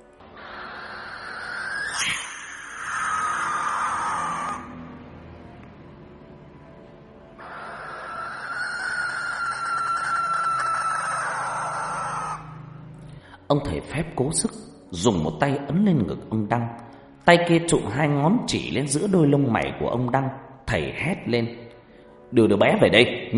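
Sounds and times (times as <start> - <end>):
barn owl eerie screech: 0.2 - 4.9, 7.4 - 12.9
speech: 13.5 - 21.6, 22.3 - 23.3.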